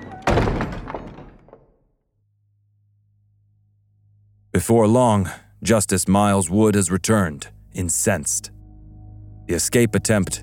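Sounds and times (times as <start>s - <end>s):
stockade door slammed and locked: 0.0s - 1.8s
speech: 4.6s - 8.6s, 9.5s - 10.4s.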